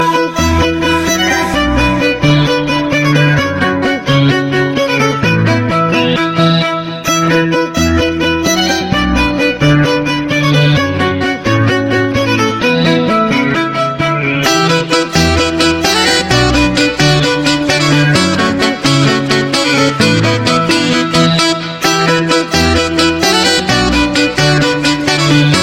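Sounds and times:
violin: 0:00.0 - 0:25.6.

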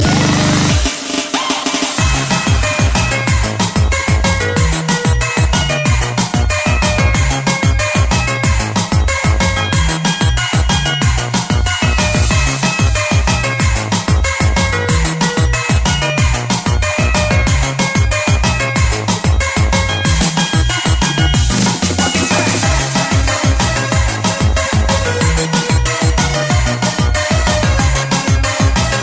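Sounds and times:
techno music: 0:00.0 - 0:29.0.

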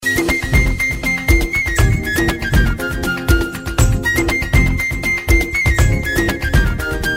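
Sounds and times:
Desi flute playing: 0:00.0 - 0:07.1.

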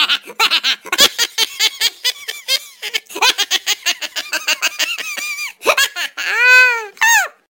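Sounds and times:
cat laughing: 0:00.0 - 0:07.3.

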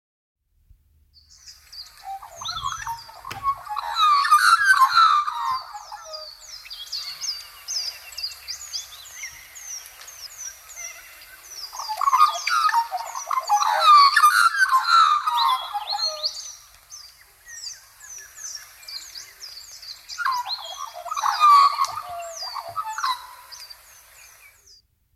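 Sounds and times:
Australian magpie calling: 0:01.4 - 0:08.1, 0:10.5 - 0:16.7, 0:19.7 - 0:24.4.

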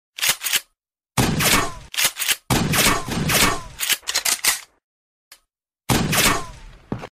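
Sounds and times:
shotgun: 0:01.2 - 0:04.0, 0:05.9 - 0:06.7.

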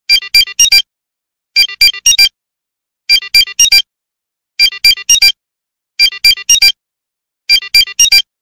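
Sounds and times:
beep: 0:00.1 - 0:00.9, 0:01.6 - 0:02.4, 0:03.1 - 0:03.9, 0:04.6 - 0:05.4, 0:06.0 - 0:06.8, 0:07.5 - 0:08.3.

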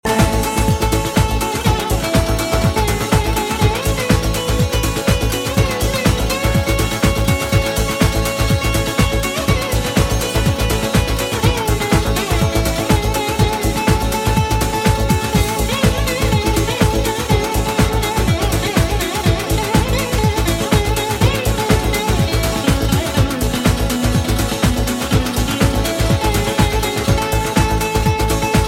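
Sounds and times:
veena: 0:00.0 - 0:28.6.

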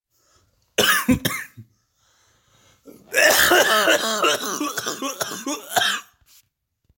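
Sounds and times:
person coughing: 0:00.8 - 0:01.6, 0:02.9 - 0:06.1.

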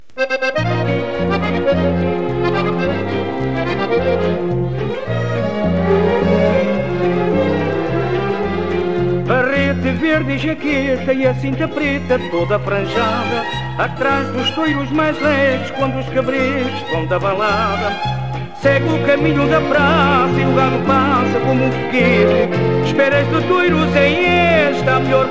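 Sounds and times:
fado music: 0:00.0 - 0:25.3.

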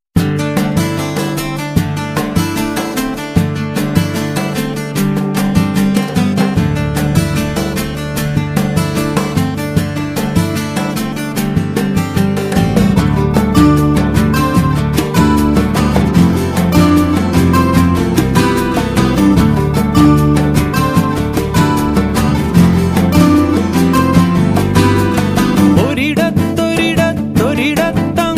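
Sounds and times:
guitar: 0:00.1 - 0:28.3.

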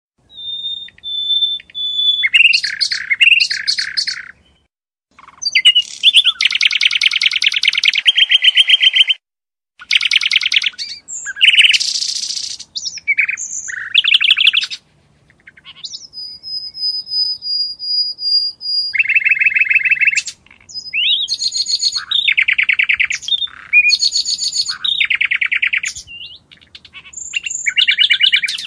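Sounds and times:
bird music: 0:00.2 - 0:09.2, 0:09.8 - 0:28.6.

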